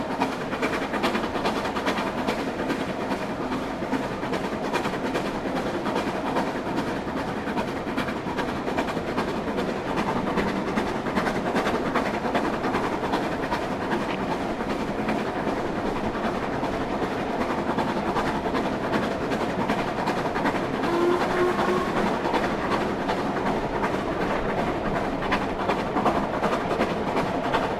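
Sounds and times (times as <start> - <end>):
train departing York: 0.0 - 27.7.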